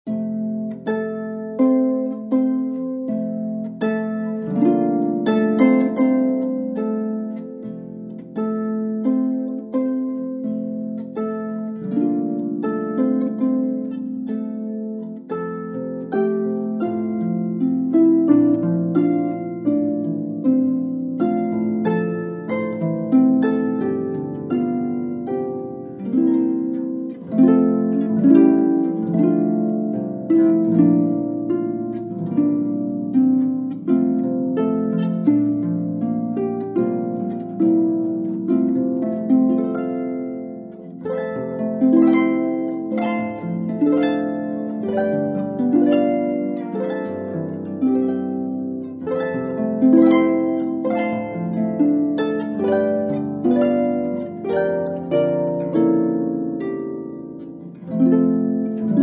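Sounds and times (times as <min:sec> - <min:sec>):
harp playing a hymn: 0:00.0 - 0:59.0.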